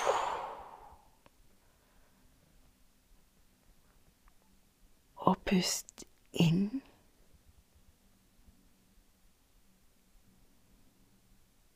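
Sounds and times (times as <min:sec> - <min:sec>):
slow exhale: 0:00.0 - 0:02.2
speech: 0:05.5 - 0:06.8.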